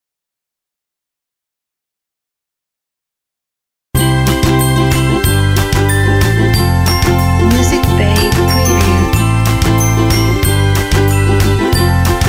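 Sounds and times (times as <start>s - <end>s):
corporate glockenspiel: 4.0s - 12.2s
corporate ukulele: 4.0s - 12.2s.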